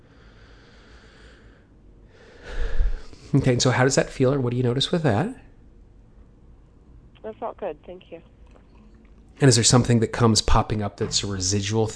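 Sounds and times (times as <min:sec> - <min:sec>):
big deep breath during a guided relaxation exercise: 0:00.0 - 0:03.4
speech: 0:03.3 - 0:05.4, 0:07.6 - 0:08.4, 0:09.4 - 0:11.9.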